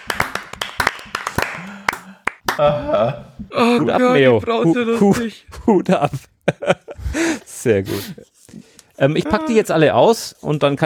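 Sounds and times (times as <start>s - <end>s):
hand clapping: 0.0s - 2.6s
speech: 2.6s - 8.3s, 9.0s - 10.8s.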